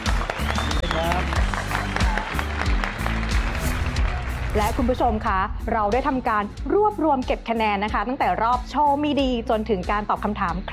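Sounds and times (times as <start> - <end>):
audience applause: 0.0 - 5.2
speech: 4.6 - 10.7.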